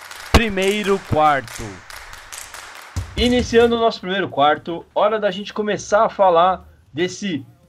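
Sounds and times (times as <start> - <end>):
podcast jingle: 0.3 - 1.9
speech: 0.4 - 1.9, 3.2 - 7.5.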